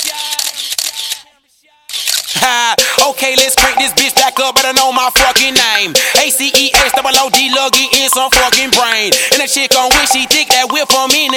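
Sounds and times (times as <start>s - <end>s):
camera shutter clicks with whir: 0.0s - 1.3s, 1.9s - 2.4s
speech: 2.4s - 11.3s.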